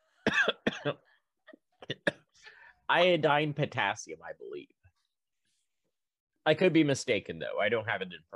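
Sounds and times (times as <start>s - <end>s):
person choking in a coughing fit: 0.2s - 2.4s
speech: 0.8s - 1.1s, 2.9s - 4.8s, 6.4s - 8.3s.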